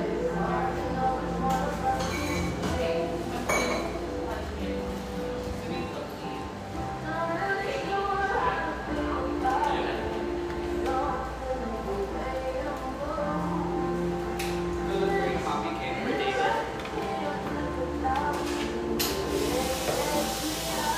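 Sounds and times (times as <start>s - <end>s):
cafe chatter in a Portland cafe: 0.0s - 20.9s
dishes and cups clinking: 1.9s - 4.0s.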